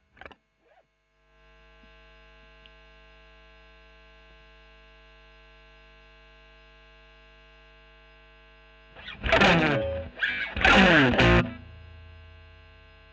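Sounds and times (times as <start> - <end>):
overdriven electric guitar recorded with Royer microphone: 9.0 - 13.1.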